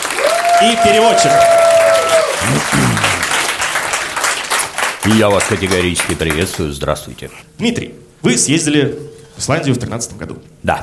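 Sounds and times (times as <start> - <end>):
audience applause welcoming speaker: 0.0 - 6.8
speech: 0.6 - 1.6, 5.1 - 10.8.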